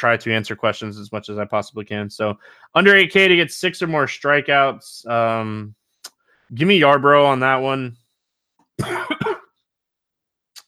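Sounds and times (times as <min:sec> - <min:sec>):
speech: 0:00.0 - 0:05.8, 0:06.5 - 0:08.0, 0:08.8 - 0:09.4
cough: 0:08.8 - 0:09.6.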